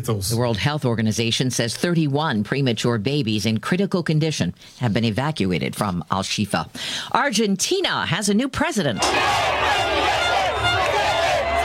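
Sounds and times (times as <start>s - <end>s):
speech: 0.0s - 10.3s
crowd cheering in the streets of Buenos Aires for Javier Milei: 9.0s - 11.6s.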